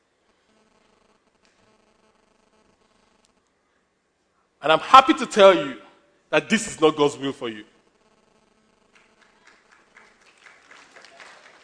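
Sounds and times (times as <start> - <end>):
speech: 4.6 - 7.7
audience of men clapping: 8.9 - 11.6.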